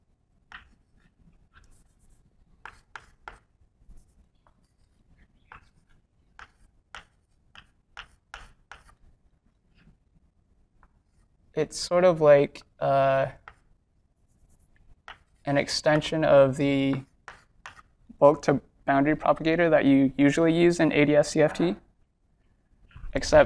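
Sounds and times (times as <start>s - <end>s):
writing a formula on a board: 0.5s - 9.1s, 13.4s - 13.7s, 14.3s - 15.5s, 16.8s - 18.0s
speech: 11.6s - 13.4s, 15.5s - 17.1s, 18.2s - 21.8s, 23.1s - 23.4s.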